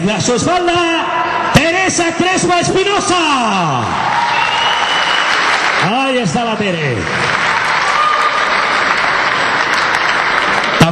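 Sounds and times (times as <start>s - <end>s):
speech: 0.1s - 4.2s, 5.8s - 7.4s
audience applause: 4.0s - 10.9s.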